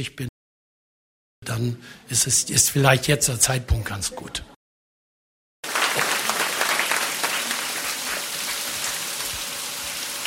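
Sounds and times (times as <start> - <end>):
speech: 0.0 - 0.3, 1.5 - 4.6
water rushing through Güstrow hydroelectric power plant: 5.7 - 10.2.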